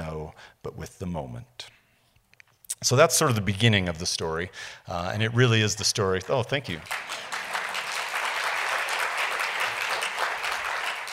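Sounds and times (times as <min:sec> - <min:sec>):
speech: 0:00.6 - 0:01.7, 0:02.8 - 0:07.4
audience applause: 0:06.8 - 0:11.1.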